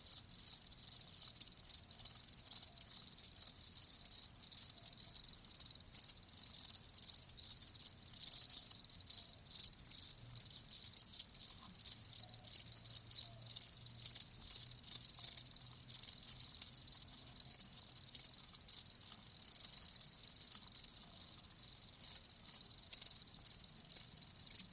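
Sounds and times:
crickets chirping: 0:00.0 - 0:24.7.

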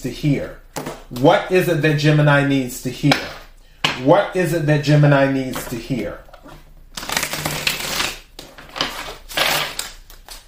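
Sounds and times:
speech: 0:00.0 - 0:03.4, 0:04.0 - 0:06.2
tarot cards being shuffled and put back together: 0:06.4 - 0:10.4.

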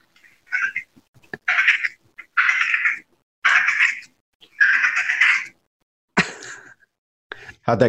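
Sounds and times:
person imitating Wyoming prairie dog call: 0:00.2 - 0:05.6.

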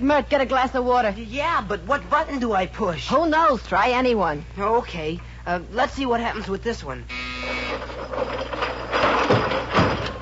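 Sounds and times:
speech: 0:00.0 - 0:08.3
furniture mechanically retracting into the wall: 0:07.6 - 0:10.1.

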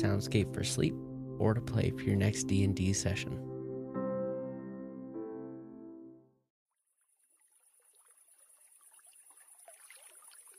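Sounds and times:
speech: 0:00.0 - 0:03.5
trickling water at a pond at night: 0:06.8 - 0:10.5.

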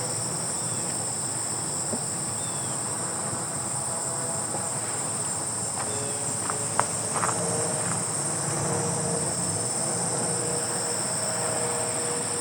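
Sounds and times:
grasshoppers buzzing: 0:00.0 - 0:12.4
footsteps on gravel: 0:05.7 - 0:08.6.

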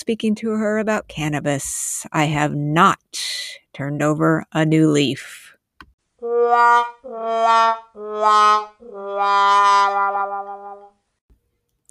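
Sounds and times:
speech: 0:00.0 - 0:05.4, 0:06.2 - 0:10.9
brassy wah wah wah sound effect: 0:06.2 - 0:10.9.

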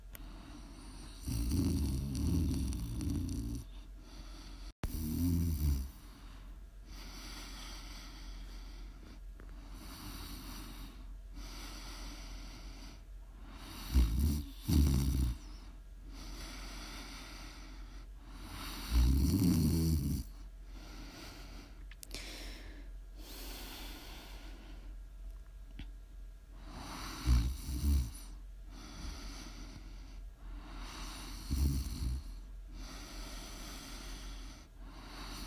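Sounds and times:
soft steady hiss: 0:00.0 - 0:35.4
loud rumbling snoring: 0:00.7 - 0:03.7, 0:04.8 - 0:06.0, 0:13.6 - 0:15.6, 0:18.4 - 0:20.4, 0:26.8 - 0:28.3, 0:30.8 - 0:35.4.

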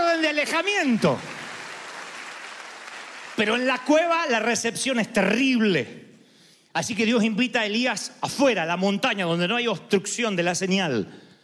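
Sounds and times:
speech: 0:00.4 - 0:01.4, 0:03.4 - 0:06.0, 0:06.8 - 0:11.2
audience applause: 0:00.8 - 0:03.7.

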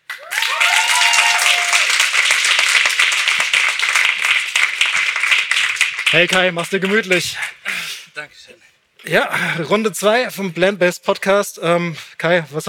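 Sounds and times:
audience applause: 0:00.0 - 0:07.7
whoops and cheers: 0:00.1 - 0:02.1
speech: 0:06.1 - 0:07.6, 0:08.2 - 0:12.6.

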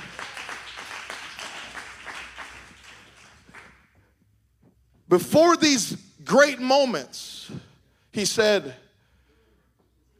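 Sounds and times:
audience clapping hands: 0:00.0 - 0:04.0
speech: 0:05.1 - 0:07.3, 0:08.2 - 0:08.8.

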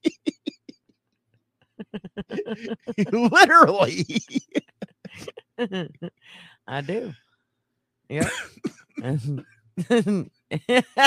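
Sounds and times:
person coughing from laughing hard: 0:00.0 - 0:00.8, 0:01.8 - 0:05.9, 0:08.2 - 0:10.3
speech: 0:02.2 - 0:04.6, 0:05.6 - 0:07.2, 0:08.1 - 0:11.0.

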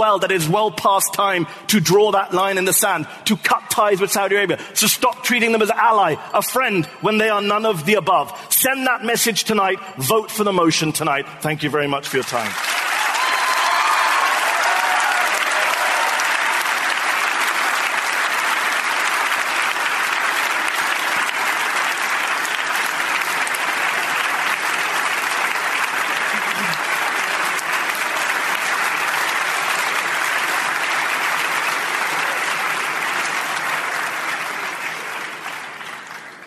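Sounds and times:
speech: 0:00.0 - 0:12.8
audience applause: 0:12.1 - 0:36.4.

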